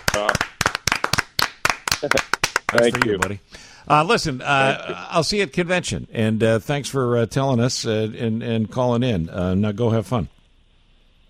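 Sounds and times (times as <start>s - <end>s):
hand clapping as a sitting ovation: 0.0s - 3.4s
speech: 0.2s - 0.5s, 2.0s - 10.4s.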